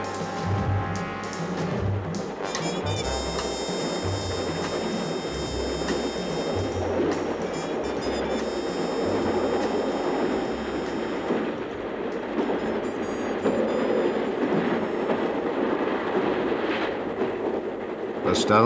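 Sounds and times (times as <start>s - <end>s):
train running on rails: 0.0s - 18.6s.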